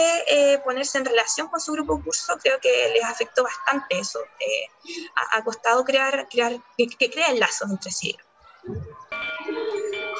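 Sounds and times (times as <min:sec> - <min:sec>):
speech: 0:00.3 - 0:09.0
school bell ringing to mark the end of recess: 0:09.1 - 0:10.1.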